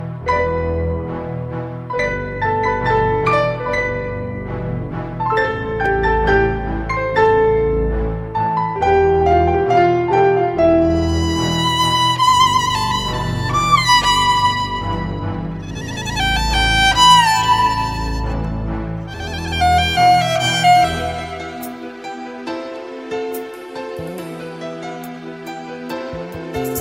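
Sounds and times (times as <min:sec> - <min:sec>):
violin: 0:00.0 - 0:26.8.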